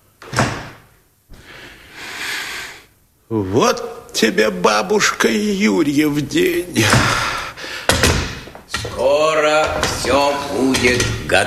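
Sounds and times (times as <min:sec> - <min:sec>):
door closing: 0:00.2 - 0:00.9, 0:06.1 - 0:11.4
speech: 0:03.3 - 0:07.3, 0:09.1 - 0:11.4.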